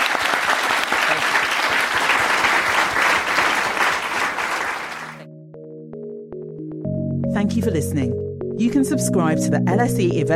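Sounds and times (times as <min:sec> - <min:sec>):
audience applause: 0:00.0 - 0:05.2
speech: 0:07.4 - 0:10.3.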